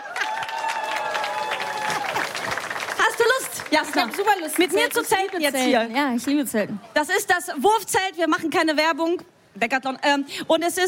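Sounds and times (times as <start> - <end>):
audience applause: 0.0 - 5.7
speech: 3.7 - 10.8.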